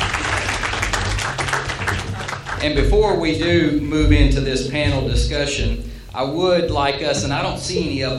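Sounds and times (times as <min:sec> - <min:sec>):
audience applause: 0:00.0 - 0:03.1
speech: 0:02.6 - 0:08.1.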